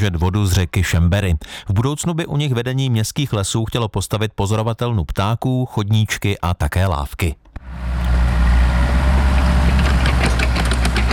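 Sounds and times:
speech: 0.0 - 8.0
heavy excavator diesel engines rumbling while digging a pond: 7.6 - 11.1
metallic clanks and scrapes: 9.3 - 11.1.

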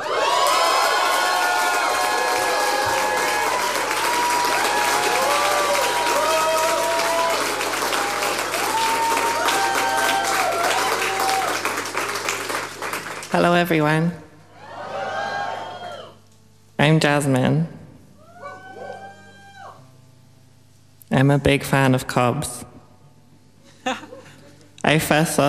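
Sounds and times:
crowd cheering and whooping: 0.0 - 13.3, 14.5 - 16.2, 18.2 - 19.8
large crowd applauding: 0.0 - 13.6
speech: 13.4 - 14.2, 16.8 - 17.8, 21.2 - 22.7, 24.9 - 25.4.

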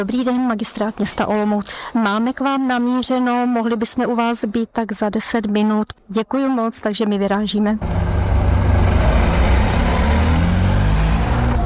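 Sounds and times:
speech: 0.0 - 8.1
car engine rumbling, pulling up to a loading ramp: 7.8 - 11.6.

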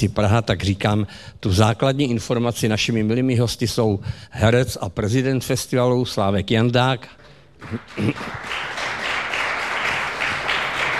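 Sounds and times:
speech: 0.0 - 8.8
applause from a small club audience: 7.6 - 10.9.

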